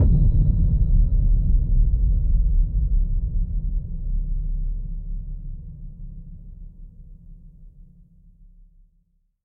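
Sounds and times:
boom: 0:00.0 - 0:04.9.

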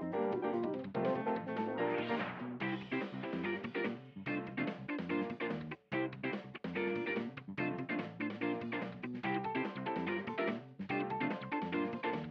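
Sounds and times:
fast karaoke track: 0:00.1 - 0:12.2.

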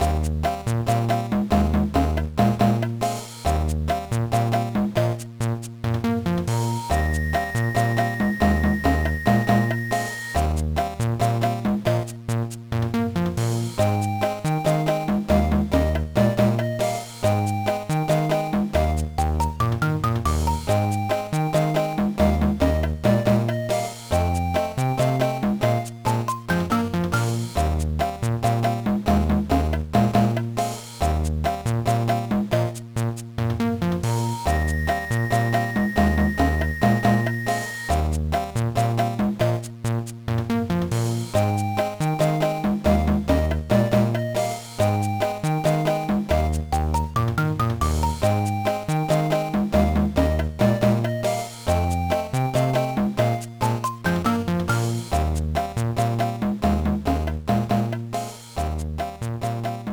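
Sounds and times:
background music: 0:00.0 - 0:59.9.

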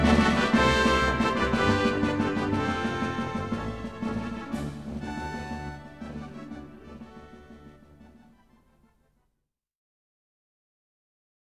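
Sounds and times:
synthesizer piece: 0:00.0 - 0:08.3.

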